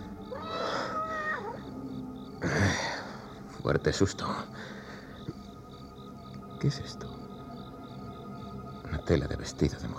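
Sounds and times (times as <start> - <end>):
cat meowing: 0.3 - 1.6
speech: 3.6 - 4.7, 6.6 - 7.2, 9.1 - 9.9.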